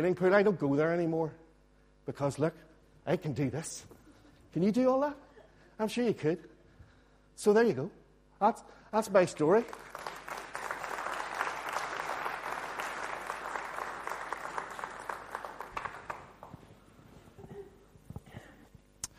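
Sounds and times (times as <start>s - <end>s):
speech: 0.0s - 1.4s, 2.1s - 5.2s, 5.8s - 6.5s, 7.4s - 10.1s
audience applause: 9.6s - 16.8s.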